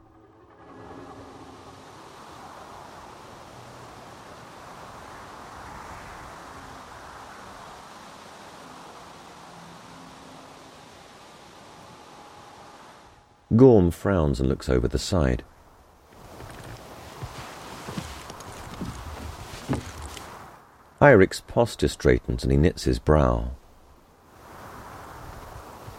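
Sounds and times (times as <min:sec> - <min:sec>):
gently coursing river water with small wavelets: 0:00.0 - 0:13.2, 0:15.5 - 0:21.0
speech: 0:13.5 - 0:15.5, 0:21.0 - 0:23.6.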